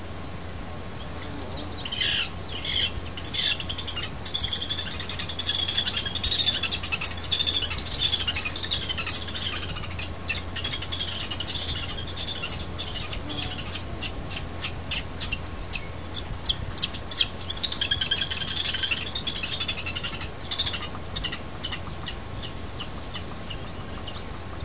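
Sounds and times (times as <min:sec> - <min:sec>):
Lewis's woodpeckers mating in eastern Washington: 0:01.2 - 0:24.6.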